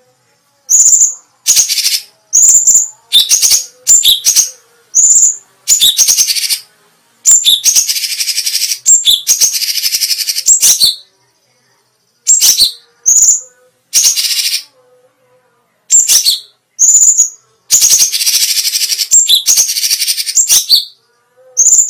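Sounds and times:
grey-cheeked bulbul rattling song: 0.7 - 6.6, 7.3 - 11.0, 12.3 - 14.7, 15.9 - 21.0, 21.6 - 21.8.

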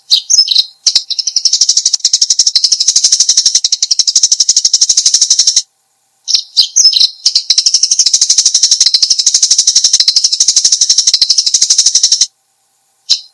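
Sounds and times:
Eurasian tree sparrow chirping: 0.0 - 5.6, 6.3 - 12.3, 13.1 - 13.3.

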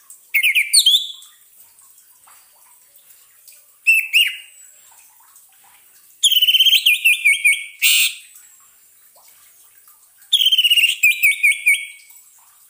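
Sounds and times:
orange-headed thrush song of whistled and chirping notes: 0.4 - 1.2, 3.9 - 4.5, 6.2 - 8.2, 10.3 - 12.0.

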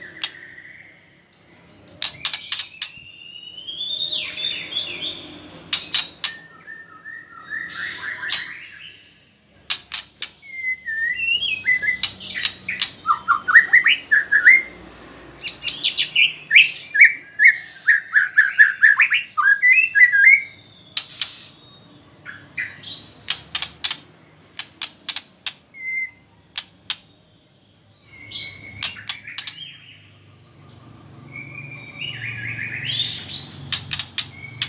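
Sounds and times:
white-rumped shama whistling: 2.0 - 5.2, 5.8 - 9.0, 10.3 - 14.7, 15.4 - 21.6, 25.7 - 26.3, 27.7 - 30.0, 31.3 - 34.6
white-rumped shama dry clicking notes: 9.7 - 10.4, 23.2 - 25.6, 26.5 - 27.1, 28.8 - 29.6, 33.7 - 34.6.

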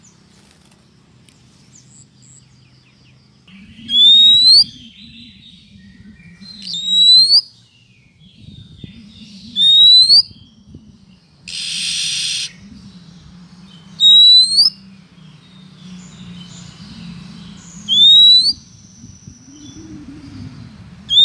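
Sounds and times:
female Oriental magpie-robin calling the male: 3.7 - 7.7, 8.6 - 10.7, 11.5 - 12.7, 13.9 - 14.8, 17.6 - 20.4, 21.1 - 21.2.

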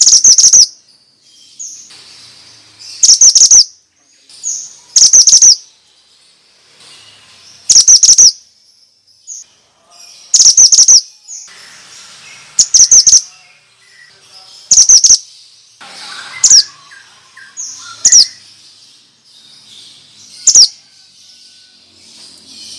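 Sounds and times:
bird giving fast runs of shrill chirps in a lure recording: 0.0 - 3.8, 4.4 - 22.7.

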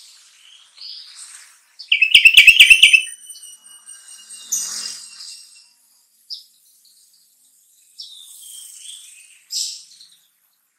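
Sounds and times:
sooty-headed bulbul singing: 1.9 - 3.2.

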